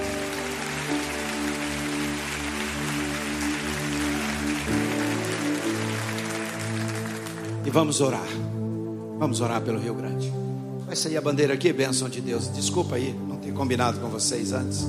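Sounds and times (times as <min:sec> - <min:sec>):
audience applauding: 0:00.0 - 0:08.0
speech: 0:07.7 - 0:08.6, 0:09.2 - 0:14.8.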